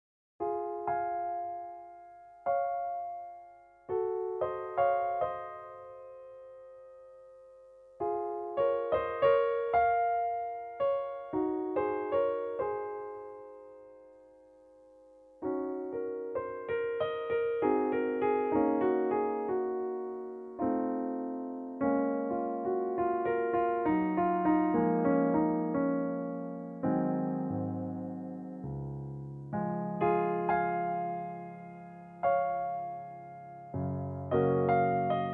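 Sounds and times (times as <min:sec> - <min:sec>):
concert grand piano: 0:00.4 - 0:35.3.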